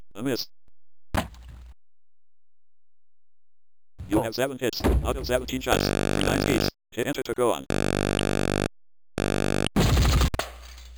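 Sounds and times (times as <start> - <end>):
speech: 0.2 - 0.6, 4.1 - 8.1
buzzy tones: 5.2 - 6.7, 7.6 - 10.3.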